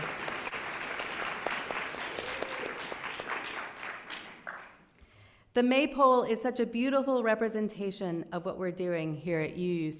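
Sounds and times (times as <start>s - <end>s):
audience applause: 0.0s - 4.8s
speech: 5.6s - 9.9s.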